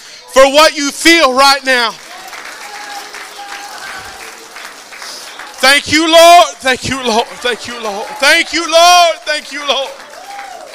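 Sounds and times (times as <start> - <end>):
speech: 0.4 - 2.0, 5.6 - 10.0
audience hand clapping: 1.4 - 10.7.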